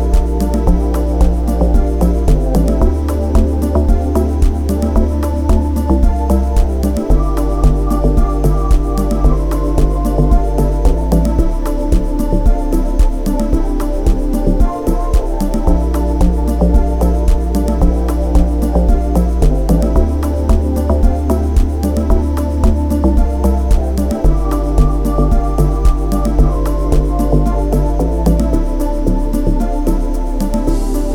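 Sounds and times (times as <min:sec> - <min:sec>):
ambient sound for chakras: 0:00.0 - 0:31.1.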